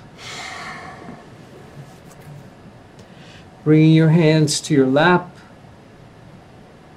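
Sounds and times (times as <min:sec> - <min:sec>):
person exhaling during a guided morning meditation and breathing exercise: 0:00.1 - 0:02.0
speech: 0:03.6 - 0:05.4.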